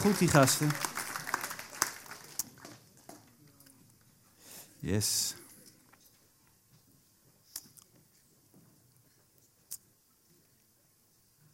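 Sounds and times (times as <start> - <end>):
speech: 0.0 - 1.0, 4.8 - 5.4
audience applause: 0.0 - 3.0.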